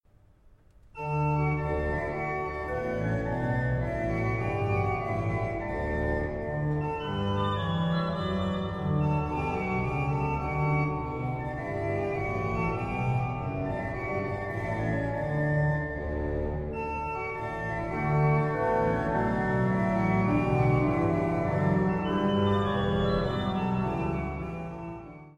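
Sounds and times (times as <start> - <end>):
organ partita on a psalm: 1.0 - 25.3.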